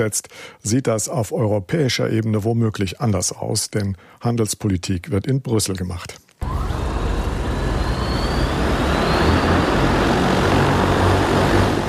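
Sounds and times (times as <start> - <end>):
speech: 0.0 - 6.5
Ehang electric passenger drone air taxi flying: 6.4 - 11.8.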